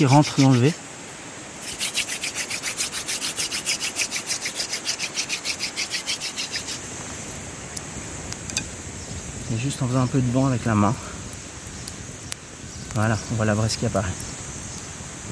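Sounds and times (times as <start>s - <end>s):
wood rubbed against wood to start a friction fire: 0.0s - 0.8s, 1.6s - 6.9s
speech: 0.0s - 0.9s, 9.5s - 11.1s, 13.0s - 14.3s.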